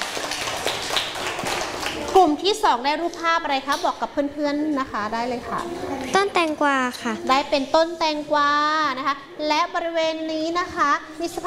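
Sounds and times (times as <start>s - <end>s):
group of children applauding in a classroom: 0.0s - 2.4s
speech: 2.2s - 11.4s.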